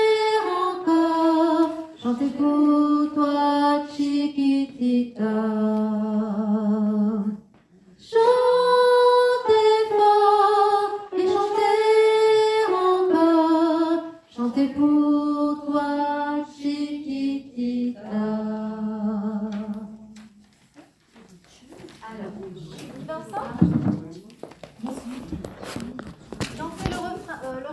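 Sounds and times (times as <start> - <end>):
sopranos singing: 0.0 - 20.5.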